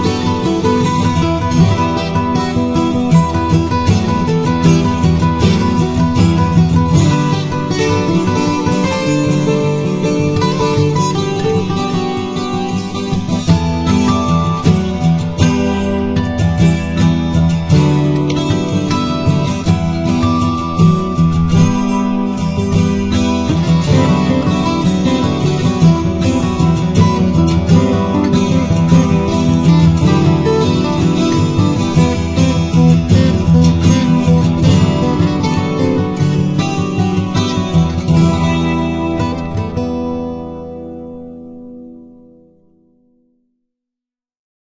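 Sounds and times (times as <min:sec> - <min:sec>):
guitar: 0:00.0 - 0:43.6.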